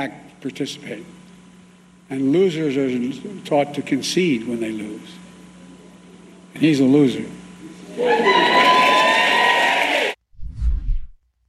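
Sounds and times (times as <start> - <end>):
speech: 0.0 - 1.2, 2.1 - 5.2, 6.6 - 7.4, 8.0 - 8.9
crowd whooping and cheering: 7.8 - 10.2
low rumble: 10.4 - 11.2.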